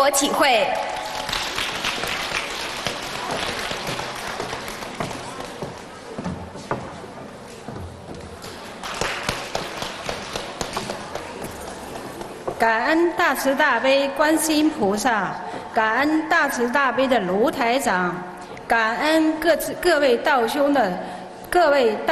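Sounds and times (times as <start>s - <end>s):
speech: 0.1s - 1.0s, 12.6s - 22.0s
warm audience applause: 1.0s - 5.7s, 8.8s - 11.4s.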